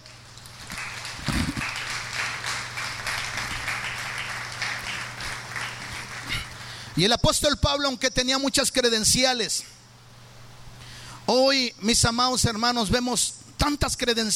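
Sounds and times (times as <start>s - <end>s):
audience applause: 0.4s - 6.8s
speech: 7.0s - 9.7s, 11.3s - 14.3s.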